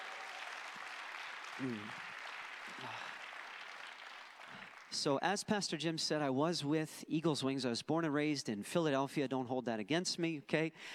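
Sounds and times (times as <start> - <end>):
audience applause: 0.0 - 5.1
speech: 1.6 - 2.1, 2.7 - 3.2, 4.5 - 10.9.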